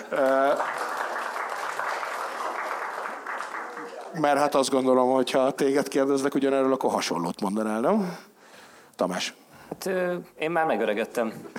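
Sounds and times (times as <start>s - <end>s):
audience applause: 0.0s - 4.7s
speech: 0.1s - 0.8s, 4.2s - 8.3s, 9.0s - 11.5s.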